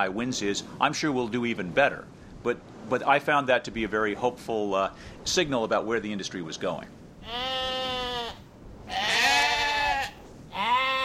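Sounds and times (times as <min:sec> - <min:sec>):
speech: 0:00.0 - 0:07.5
faint outdoor background: 0:00.0 - 0:11.0
sheep bleating on a farm: 0:07.2 - 0:11.0.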